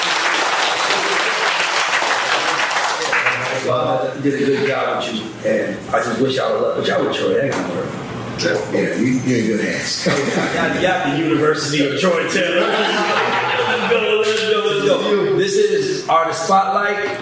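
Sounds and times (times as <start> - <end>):
audience applause: 0.0 - 3.8
speech: 3.6 - 14.0, 14.9 - 17.2
laughter: 9.9 - 11.1, 12.2 - 14.9.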